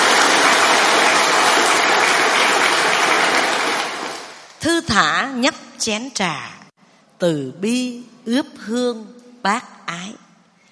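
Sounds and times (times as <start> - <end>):
audience applause: 0.0 - 4.5
speech: 5.0 - 6.6, 7.2 - 10.2.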